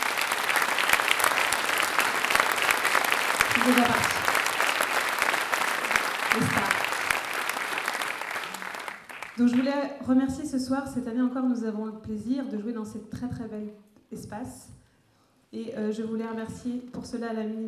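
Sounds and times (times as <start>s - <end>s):
audience applauding loudly: 0.0s - 9.8s
speech: 3.6s - 4.2s, 9.4s - 14.8s, 15.5s - 17.6s.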